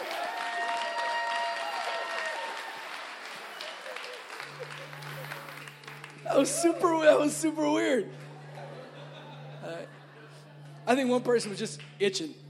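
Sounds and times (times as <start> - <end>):
awkward clapping: 0.0 - 6.6, 11.4 - 12.0
laughter: 3.4 - 10.8
speech: 6.3 - 8.2, 10.9 - 12.4.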